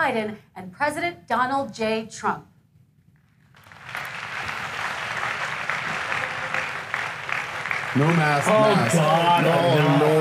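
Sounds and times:
speech: 0.0s - 2.5s, 7.9s - 10.1s
debate hall audience applause: 3.6s - 10.1s.

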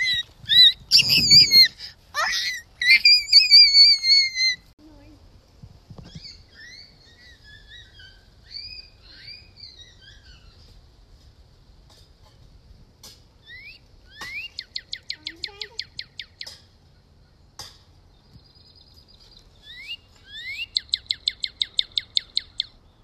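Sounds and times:
northern cardinal singing: 0.0s - 1.7s, 2.8s - 4.6s, 6.0s - 10.6s, 13.4s - 16.6s, 18.2s - 23.0s.

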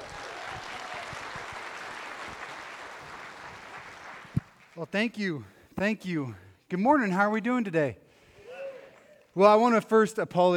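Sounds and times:
church congregation applauding to welcome a guest pastor: 0.0s - 4.9s
speech: 4.8s - 8.0s, 9.4s - 10.5s.

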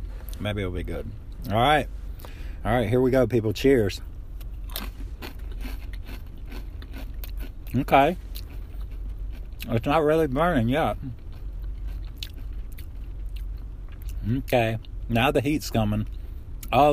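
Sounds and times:
speech: 0.4s - 4.1s, 7.7s - 8.2s, 9.6s - 11.2s, 14.2s - 16.9s
biting and chewing a crunchy chip: 4.5s - 9.9s, 10.9s - 14.2s.

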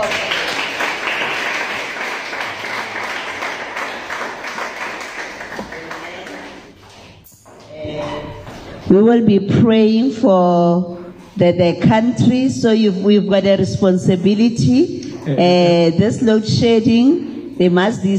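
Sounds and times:
audience clapping: 0.0s - 7.0s
speech: 8.9s - 18.1s.

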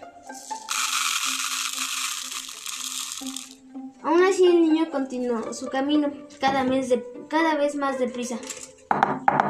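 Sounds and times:
rain hissing: 0.4s - 3.6s
speech: 4.0s - 9.4s.

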